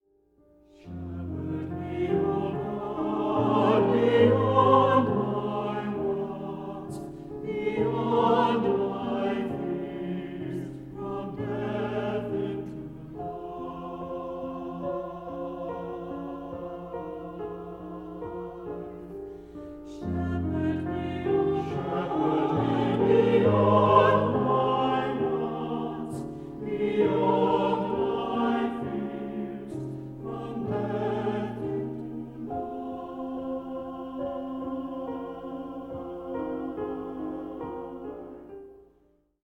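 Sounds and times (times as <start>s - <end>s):
hymn music: 0.5s - 39.4s.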